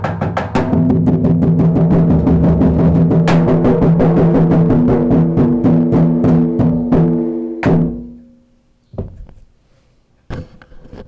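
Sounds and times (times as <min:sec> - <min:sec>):
crazy drums: 0:00.0 - 0:08.3.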